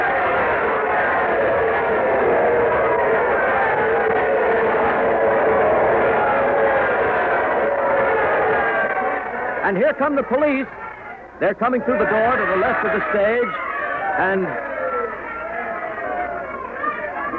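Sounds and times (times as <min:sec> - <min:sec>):
crowd ovation: 0:00.0 - 0:17.3
speech: 0:09.9 - 0:10.8, 0:11.4 - 0:14.7.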